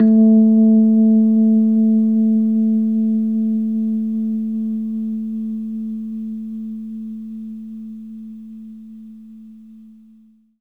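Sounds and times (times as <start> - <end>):
Rhodes electric piano: 0.0 - 5.8.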